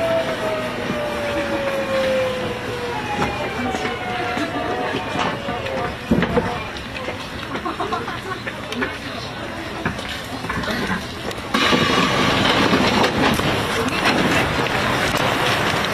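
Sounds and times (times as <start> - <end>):
Seoul subway Line 4 train running: 0.0 - 15.9
laughter: 1.2 - 2.1, 4.0 - 5.5, 7.4 - 9.2.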